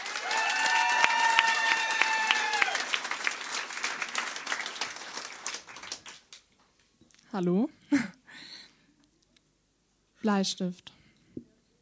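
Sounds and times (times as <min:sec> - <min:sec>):
applause: 0:00.0 - 0:06.5
speech: 0:07.3 - 0:08.2, 0:10.2 - 0:11.0.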